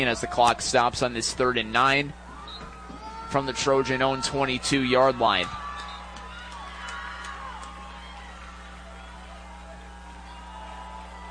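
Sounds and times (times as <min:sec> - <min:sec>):
speech: 0:00.0 - 0:02.2, 0:03.3 - 0:05.6
West Central football crowd cheering: 0:02.2 - 0:11.2.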